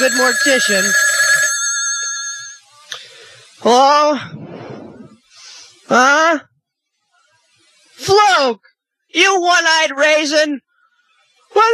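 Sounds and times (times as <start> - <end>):
speech: 0.0 - 1.3, 3.6 - 4.4, 5.9 - 6.5, 8.0 - 10.6, 11.5 - 11.7
telephone ringing: 0.0 - 2.7.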